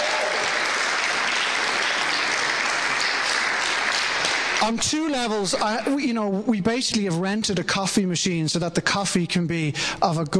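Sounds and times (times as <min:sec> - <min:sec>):
sustained audience applause from a sizeable crowd: 0:00.0 - 0:05.8
speech: 0:04.6 - 0:10.3.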